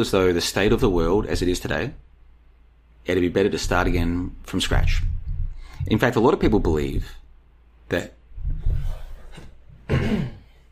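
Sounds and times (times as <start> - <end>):
speech: 0.0 - 2.1, 3.0 - 5.1, 5.8 - 7.2, 7.9 - 8.2
throat clearing: 9.8 - 10.6.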